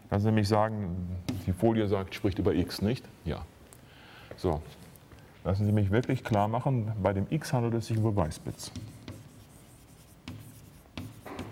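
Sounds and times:
speech: 0:00.1 - 0:03.6, 0:04.4 - 0:04.8, 0:05.4 - 0:09.0
lecturer writing on a board with marker or chalk: 0:01.2 - 0:01.6, 0:08.0 - 0:11.4.

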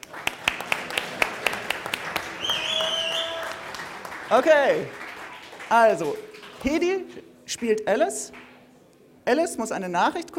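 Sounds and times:
audience applause: 0:00.0 - 0:06.8
speech: 0:04.3 - 0:05.0, 0:05.7 - 0:08.5, 0:09.3 - 0:10.3.

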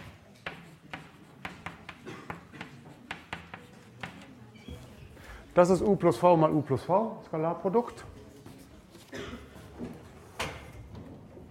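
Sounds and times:
faint scratchy strokes of an equation being handwritten: 0:00.0 - 0:04.4
speech: 0:05.6 - 0:08.1.

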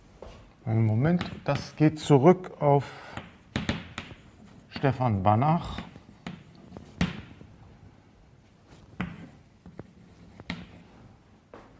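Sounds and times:
speech: 0:00.2 - 0:03.2, 0:04.8 - 0:05.9
handwriting strokes writing out titles: 0:03.2 - 0:11.2.

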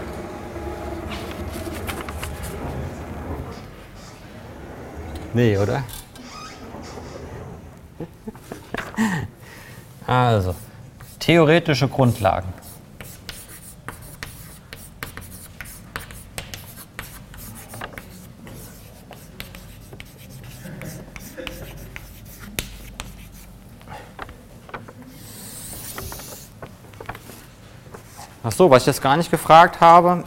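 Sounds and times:
speech: 0:05.4 - 0:06.0, 0:10.1 - 0:10.6, 0:11.2 - 0:12.6, 0:28.6 - 0:30.2
pen or chalk writing on a board during a lecture: 0:10.5 - 0:11.3, 0:12.1 - 0:27.4.

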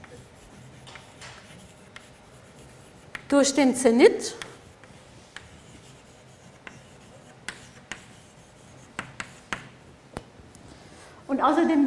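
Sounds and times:
writing on a board during a lecture: 0:00.0 - 0:03.4, 0:04.4 - 0:09.8
speech: 0:03.3 - 0:04.4, 0:11.4 - 0:11.8.

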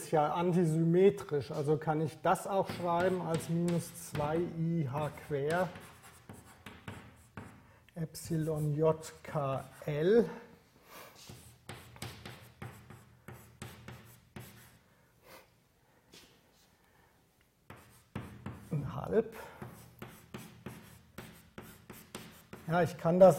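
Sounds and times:
speech: 0:00.1 - 0:05.9, 0:08.0 - 0:10.4, 0:19.1 - 0:19.5, 0:22.7 - 0:23.3
writing on a board during a physics lecture: 0:02.4 - 0:09.9, 0:11.1 - 0:14.8, 0:17.7 - 0:18.9, 0:19.5 - 0:23.0.

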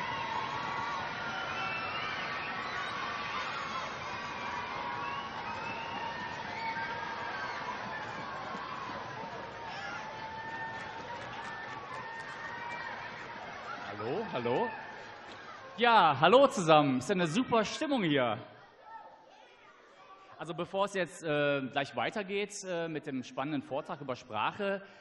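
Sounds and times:
large group of children applauding: 0:00.0 - 0:15.8
speech: 0:14.0 - 0:14.8, 0:15.8 - 0:18.5, 0:20.4 - 0:24.9.

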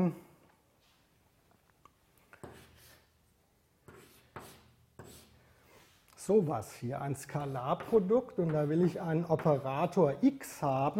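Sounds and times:
speech: 0:00.0 - 0:00.2, 0:06.3 - 0:10.9
writing on a board during a physics lecture: 0:02.4 - 0:03.1, 0:03.8 - 0:06.5, 0:07.2 - 0:09.9.

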